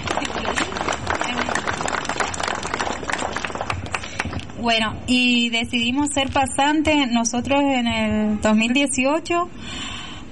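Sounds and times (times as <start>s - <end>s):
audience applause: 0.0s - 4.6s
speech: 4.6s - 9.8s.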